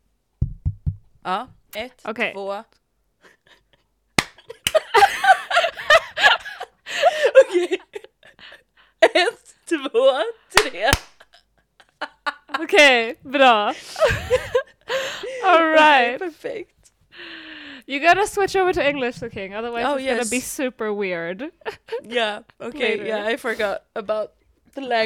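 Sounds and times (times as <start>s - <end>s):
speech: 1.2s - 2.8s, 9.1s - 11.1s, 12.6s - 14.6s, 15.4s - 16.8s, 17.9s - 25.0s
hand clap for recording sync: 4.2s - 4.9s, 10.6s - 11.4s
laughter: 4.4s - 8.4s, 13.8s - 15.4s.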